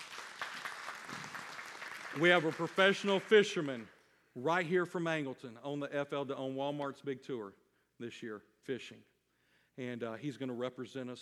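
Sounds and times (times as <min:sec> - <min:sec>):
audience applause: 0:00.0 - 0:03.8
speech: 0:02.2 - 0:09.1, 0:09.8 - 0:11.2.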